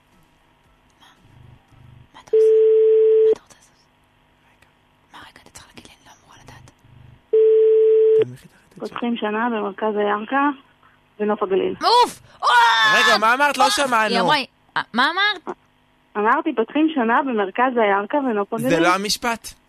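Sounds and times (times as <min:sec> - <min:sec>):
telephone dialing out with buzzing ring tones: 0:02.4 - 0:03.4, 0:07.4 - 0:08.2
speech: 0:09.0 - 0:12.2, 0:12.9 - 0:15.6, 0:16.2 - 0:19.6.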